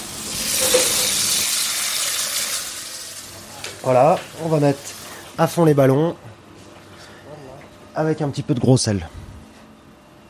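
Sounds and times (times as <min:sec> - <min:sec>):
filling a saucepan with water: 0:00.0 - 0:05.2
speech: 0:03.8 - 0:06.3, 0:08.0 - 0:09.2.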